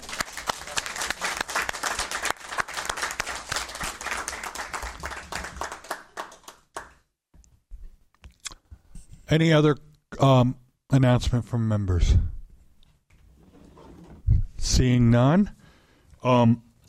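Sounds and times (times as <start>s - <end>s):
audience applause for departing members: 0.0s - 7.0s
speech: 9.3s - 12.3s, 14.7s - 15.6s, 16.2s - 16.6s.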